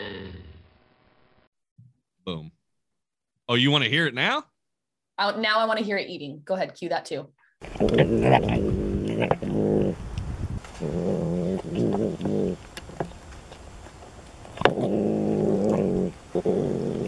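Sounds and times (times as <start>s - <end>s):
speech: 2.3s - 2.6s, 3.5s - 4.5s, 5.2s - 9.6s
bobcat vocalizing in rough growls: 7.6s - 13.2s, 14.5s - 17.0s.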